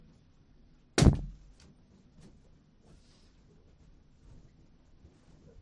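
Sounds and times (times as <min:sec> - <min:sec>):
pops from a needle on a stick: 0:01.0 - 0:01.5.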